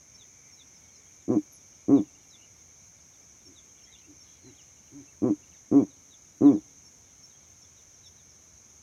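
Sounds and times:
owl hooting at night: 1.3s - 2.1s, 4.9s - 6.6s.

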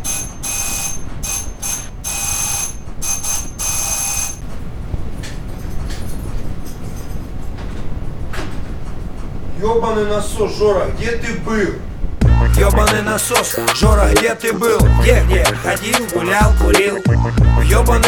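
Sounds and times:
doorbell ringing: 0.0s - 4.4s
speech: 9.6s - 11.9s, 12.6s - 18.0s.

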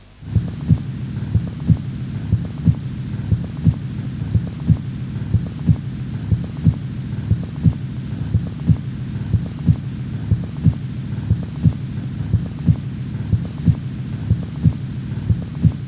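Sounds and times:
soft hum: 0.0s - 15.8s
heart sounds through a stethoscope over the aorta: 0.2s - 15.8s.

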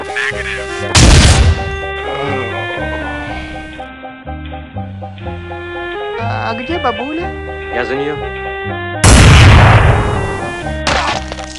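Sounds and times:
sustained musical tone: 0.0s - 10.8s
gunshot headshot in a video game shooter: 0.9s - 1.7s, 9.0s - 11.2s
speech: 6.6s - 8.9s.

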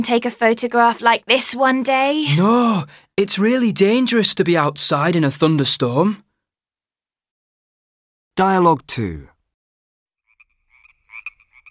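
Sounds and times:
speech: 0.0s - 6.3s, 8.4s - 9.3s
frogs croaking: 10.2s - 11.6s.

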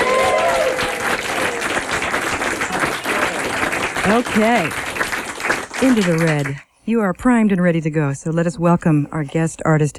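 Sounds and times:
studio audience cheering and clapping: 0.0s - 6.6s
speech: 4.1s - 4.8s, 5.8s - 9.9s.

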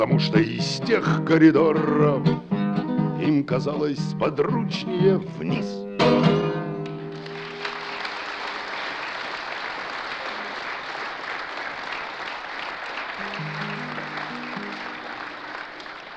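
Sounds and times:
speech: 0.0s - 2.4s, 3.2s - 6.4s
audience applause: 6.9s - 16.1s.

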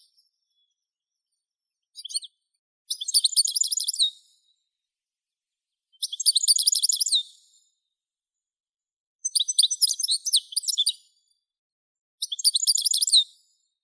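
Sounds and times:
European goldfinch Carduelis carduelis singing: 0.0s - 4.6s, 5.7s - 7.8s, 9.2s - 11.3s, 12.2s - 13.6s.

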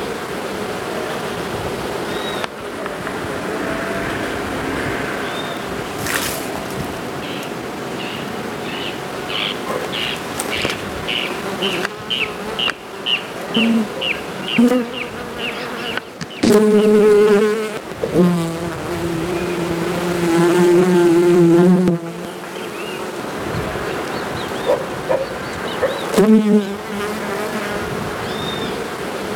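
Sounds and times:
bee buzzing: 0.0s - 29.3s.

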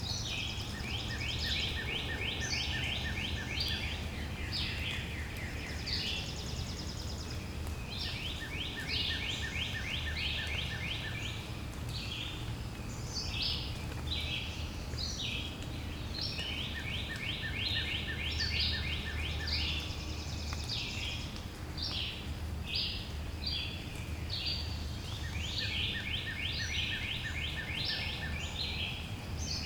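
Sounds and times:
birds singing: 0.0s - 29.6s.

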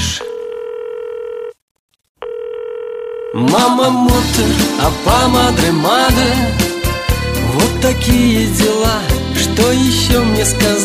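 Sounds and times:
telephone dial tone after calling someone: 0.2s - 1.6s, 2.2s - 3.4s
speech: 3.3s - 6.7s, 7.6s - 10.8s.

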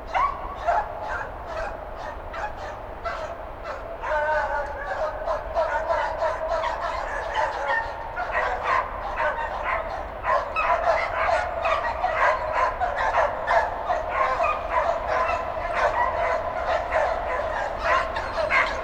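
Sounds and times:
bloodhound barking outdoors: 0.0s - 18.8s.

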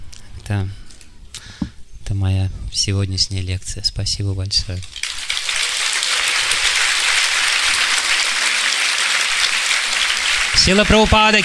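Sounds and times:
speech: 0.5s - 0.8s, 2.2s - 5.0s, 10.6s - 11.4s
audience applause: 4.8s - 11.4s.

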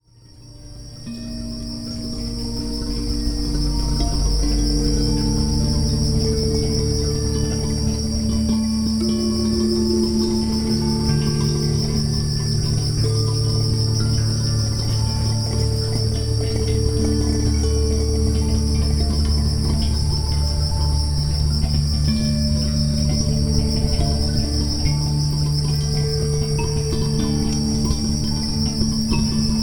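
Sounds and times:
crickets chirping: 0.0s - 29.6s.

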